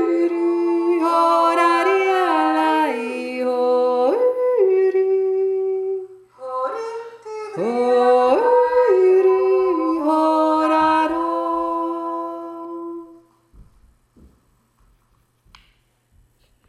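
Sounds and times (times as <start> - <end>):
two voices yodeling: 0.0 - 13.3.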